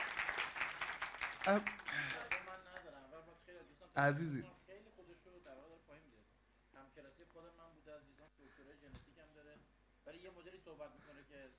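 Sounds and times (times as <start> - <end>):
audience applause: 0.0 - 2.8
speech: 1.4 - 2.0, 4.0 - 4.6, 10.1 - 11.5.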